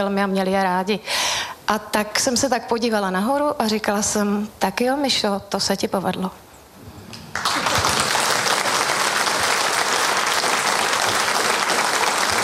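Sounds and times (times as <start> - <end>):
speech: 0.0 - 6.4
audience applause: 7.3 - 12.4.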